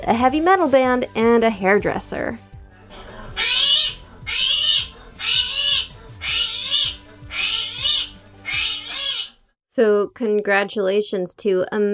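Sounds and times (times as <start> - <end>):
speech: 0.0 - 2.5, 9.8 - 11.9
screaming hairy armadillo call: 3.0 - 9.4.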